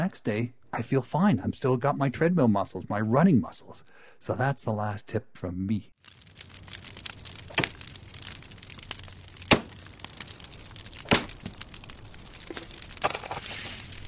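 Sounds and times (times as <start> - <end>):
speech: 0.0 - 6.2
campfire crackling: 6.0 - 14.0.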